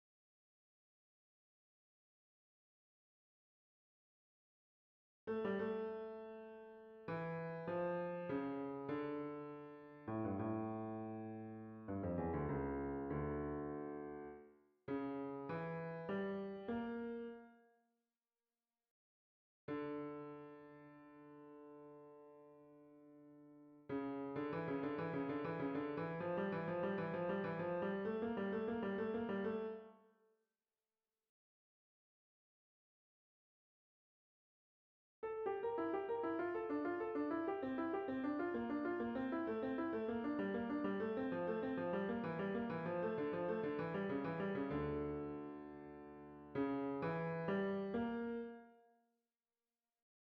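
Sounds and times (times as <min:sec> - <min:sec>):
classical keyboard piece in the left channel: 0:05.4 - 0:17.5, 0:19.7 - 0:29.9, 0:35.3 - 0:48.8.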